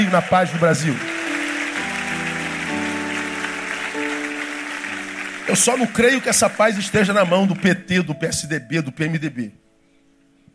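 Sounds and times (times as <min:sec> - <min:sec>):
applause: 0:00.0 - 0:08.4
speech: 0:00.1 - 0:01.2, 0:05.5 - 0:09.6.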